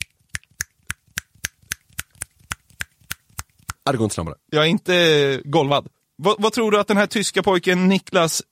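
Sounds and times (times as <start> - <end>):
rapid finger snapping: 0.0 - 3.8
speech: 3.9 - 8.4.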